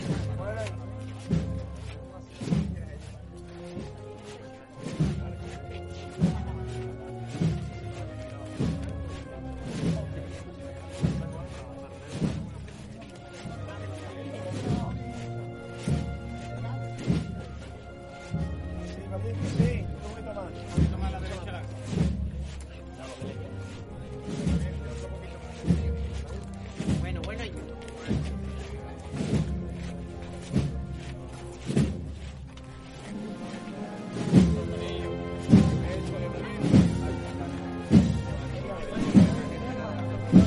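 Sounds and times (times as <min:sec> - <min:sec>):
marching band in the procession of María Santísima de Salud y Esperanza: 0:00.0 - 0:40.4.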